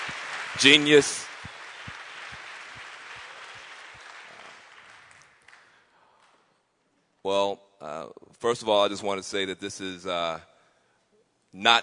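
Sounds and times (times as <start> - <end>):
audience applause: 0.0 - 5.8
speech: 0.6 - 1.3, 8.4 - 10.5, 11.6 - 11.8.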